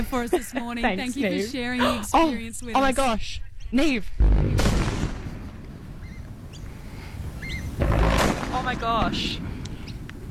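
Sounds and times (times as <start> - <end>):
speech: 0.0 - 4.8, 8.6 - 9.6
demolition explosions at the Liddell Power Station chimney stack site: 4.2 - 10.2.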